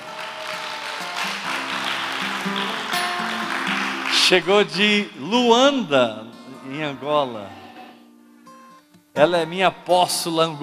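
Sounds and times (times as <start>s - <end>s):
audience applause: 0.0s - 4.8s
speech: 4.3s - 7.6s, 9.2s - 10.6s.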